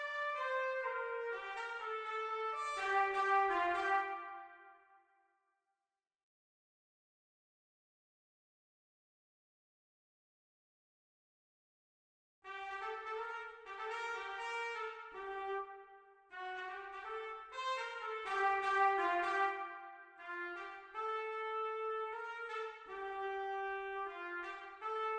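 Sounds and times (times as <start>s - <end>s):
B-flat trumpet: 0.0s - 5.0s, 12.4s - 25.1s.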